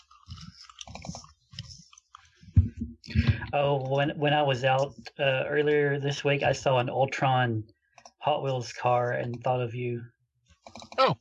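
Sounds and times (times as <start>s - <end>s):
crunchy chewing of snack food: 0.0s - 2.4s
speech: 3.5s - 10.2s, 11.0s - 11.1s.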